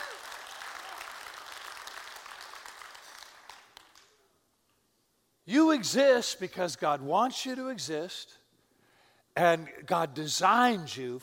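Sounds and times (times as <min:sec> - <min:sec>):
audience clapping: 0:00.0 - 0:04.2
speech: 0:05.5 - 0:08.4, 0:09.4 - 0:11.2.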